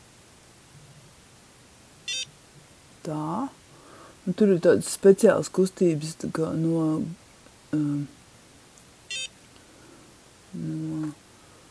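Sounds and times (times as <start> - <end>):
short electronic beep from a facial skincare device: 2.1 - 2.3, 9.1 - 9.3
speech: 3.1 - 3.6, 4.2 - 8.2, 10.5 - 11.2.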